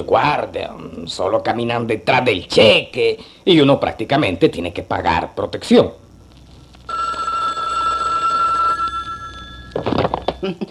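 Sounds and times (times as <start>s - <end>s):
speech: 0.0s - 6.0s, 10.4s - 10.6s
telephone ringing: 6.9s - 10.4s.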